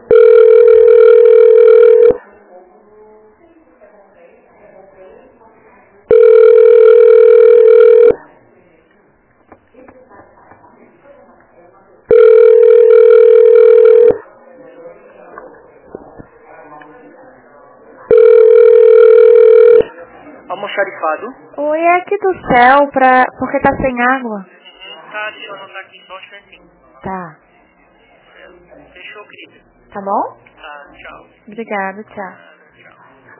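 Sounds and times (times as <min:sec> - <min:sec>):
telephone ringback tone while on hold: 0:00.1 - 0:02.2, 0:06.1 - 0:08.2, 0:12.1 - 0:14.2, 0:18.1 - 0:19.9
speech: 0:22.0 - 0:24.6, 0:29.4 - 0:30.4, 0:31.5 - 0:32.5.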